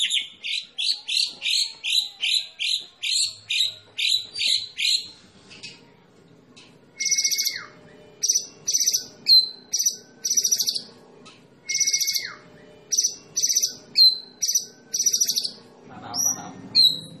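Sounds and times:
White-rumped shama singing: 0:00.0 - 0:05.8, 0:07.0 - 0:10.9, 0:11.7 - 0:17.1.

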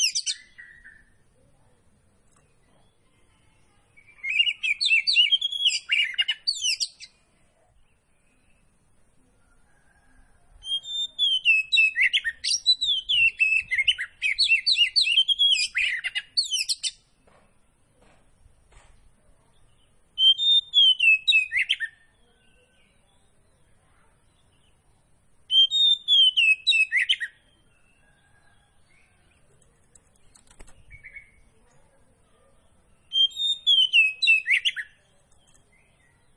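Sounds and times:
Oriental magpie-robin singing: 0:00.0 - 0:01.3, 0:04.0 - 0:07.2, 0:10.6 - 0:17.1, 0:19.6 - 0:24.8, 0:25.5 - 0:28.0, 0:30.4 - 0:31.6, 0:32.6 - 0:36.3.

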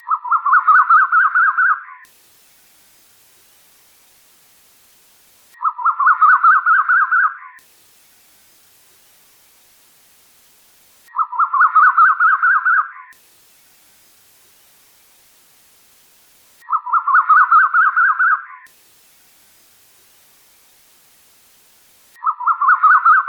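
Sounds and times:
bird chattering song: 0:00.0 - 0:02.1, 0:05.5 - 0:07.6, 0:11.1 - 0:13.2, 0:16.6 - 0:18.7, 0:22.2 - 0:23.2.

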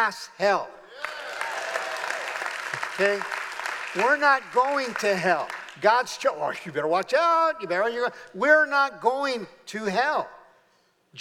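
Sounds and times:
speech: 0:00.0 - 0:01.2, 0:03.0 - 0:10.4
small group clapping unevenly: 0:01.0 - 0:05.9.

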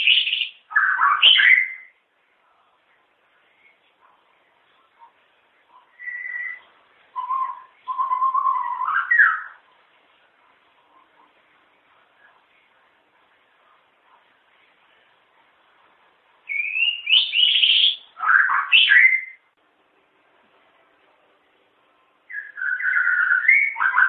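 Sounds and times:
long-tailed shrike chattering and whistling: 0:00.0 - 0:01.9, 0:05.9 - 0:09.6, 0:16.5 - 0:19.4, 0:22.3 - 0:24.0.

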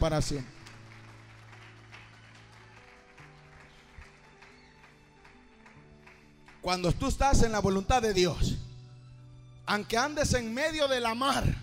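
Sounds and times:
speech: 0:00.0 - 0:00.6, 0:06.6 - 0:08.6, 0:09.7 - 0:11.6
church audience applauding during a service: 0:00.0 - 0:07.2.

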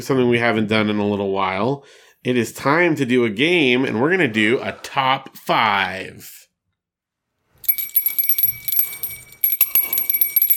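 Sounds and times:
speech: 0:00.0 - 0:06.4
bright bell ringing: 0:07.6 - 0:10.5.

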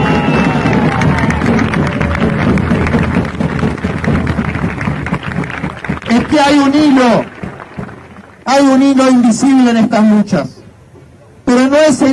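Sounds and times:
crowd applause: 0:00.0 - 0:09.2
speech: 0:06.2 - 0:07.3, 0:08.5 - 0:10.6, 0:11.5 - 0:12.1.

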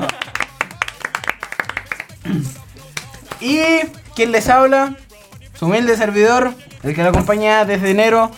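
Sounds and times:
audience applause: 0:00.0 - 0:02.1
speech: 0:02.3 - 0:02.6, 0:03.4 - 0:05.0, 0:05.6 - 0:08.3.

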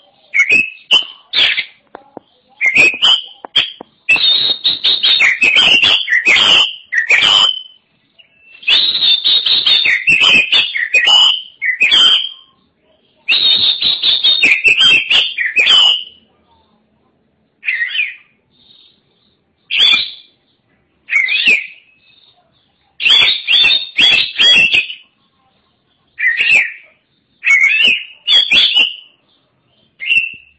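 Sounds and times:
Oriental magpie-robin whistling song: 0:00.2 - 0:01.8, 0:02.5 - 0:12.6, 0:13.2 - 0:16.2, 0:17.6 - 0:20.4, 0:21.1 - 0:25.2, 0:26.2 - 0:30.5.

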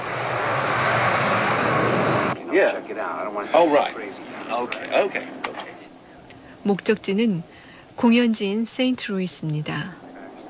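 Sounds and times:
jet engine roar in a private jet's cabin: 0:00.0 - 0:05.9
speech: 0:02.6 - 0:05.4, 0:06.6 - 0:10.0.

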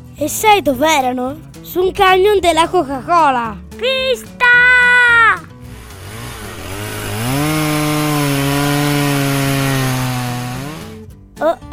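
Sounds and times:
speech: 0:00.2 - 0:04.7
power saw cutting a tree: 0:05.6 - 0:11.0.

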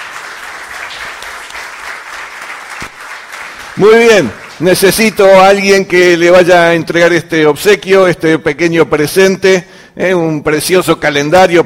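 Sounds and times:
church congregation applauding to welcome first-time visitors: 0:00.0 - 0:05.9
speech: 0:03.8 - 0:11.6.

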